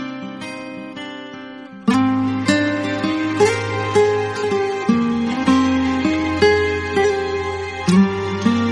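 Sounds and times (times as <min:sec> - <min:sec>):
boarding music: 0:02.1 - 0:08.7.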